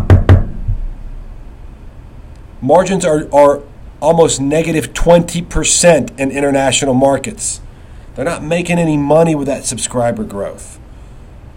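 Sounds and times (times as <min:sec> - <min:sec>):
knocking on wood: 0:00.0 - 0:00.8
speech: 0:02.6 - 0:10.8.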